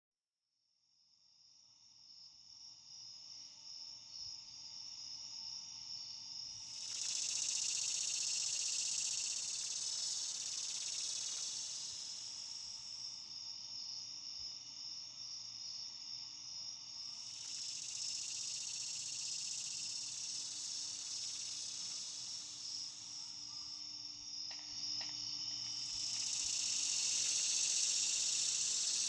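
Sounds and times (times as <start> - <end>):
cicada buzzing drone: 6.7 - 13.0, 17.2 - 29.0.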